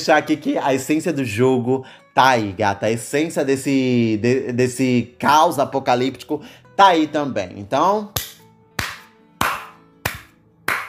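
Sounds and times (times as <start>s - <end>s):
speech: 0.0s - 8.2s
hand clapping: 8.2s - 10.8s.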